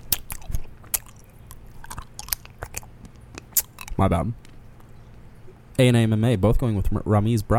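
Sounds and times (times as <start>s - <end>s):
person eating a caramel apple sucker: 0.0s - 5.0s
speech: 4.0s - 4.5s, 5.8s - 7.5s.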